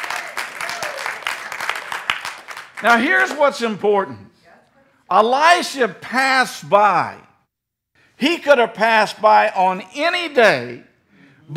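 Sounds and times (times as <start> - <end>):
congregation clapping hands in praise during a church sermon: 0.0 - 3.8
speech: 2.8 - 4.3, 5.1 - 7.3, 8.2 - 10.9.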